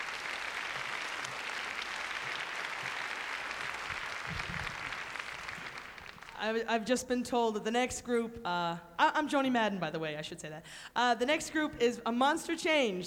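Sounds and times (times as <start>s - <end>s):
audience applause: 0.0s - 6.4s
speech: 6.4s - 13.0s.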